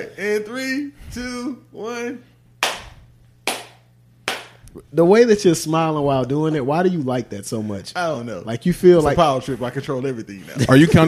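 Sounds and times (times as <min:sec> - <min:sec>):
speech: 0:00.0 - 0:02.3, 0:04.8 - 0:11.0
low steady hum: 0:00.0 - 0:11.0
hand claps: 0:02.6 - 0:04.6.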